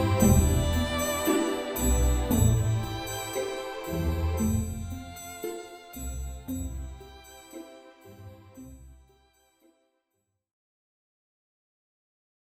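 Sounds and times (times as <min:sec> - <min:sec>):
classical music mix: 0:00.0 - 0:09.8.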